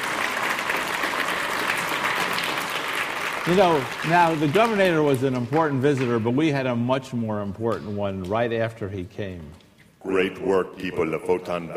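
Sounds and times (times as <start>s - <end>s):
audience applauding for the governor: 0.0s - 6.6s
speech: 3.4s - 11.7s.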